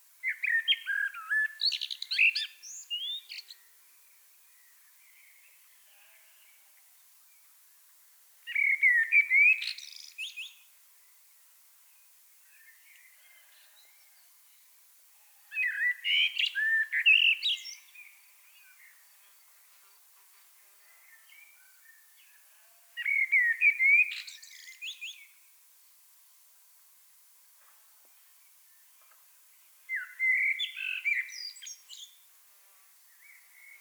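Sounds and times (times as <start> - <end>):
common blackbird singing: 0.2 - 3.6, 8.5 - 10.6, 15.6 - 18.9, 23.0 - 25.3, 29.9 - 32.2.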